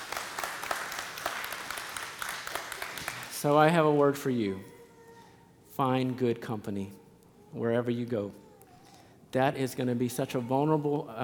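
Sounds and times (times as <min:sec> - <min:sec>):
crowd applauding for graduating students in a large room: 0:00.0 - 0:04.1
speech: 0:03.4 - 0:04.7, 0:05.8 - 0:08.4, 0:09.3 - 0:11.2.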